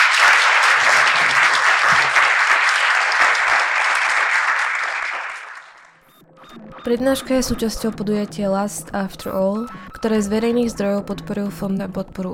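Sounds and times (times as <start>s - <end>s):
crowd applauding: 0.0s - 6.0s
speech: 6.8s - 12.3s.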